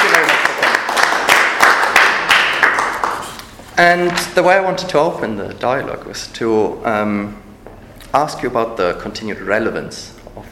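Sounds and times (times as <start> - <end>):
audience applause: 0.0 - 3.4
speech: 3.8 - 7.4, 8.1 - 10.5.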